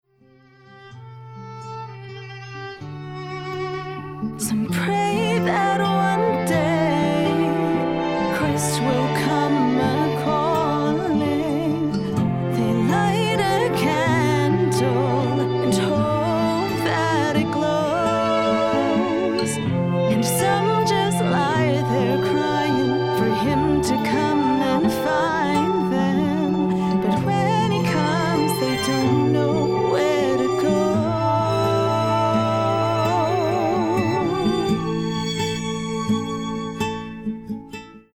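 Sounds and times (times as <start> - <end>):
person singing: 3.9 - 36.7.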